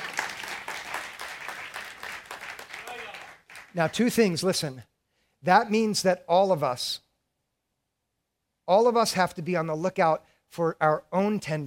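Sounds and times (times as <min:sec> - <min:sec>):
audience applause: 0:00.0 - 0:03.9
speech: 0:03.7 - 0:07.0, 0:08.7 - 0:11.6.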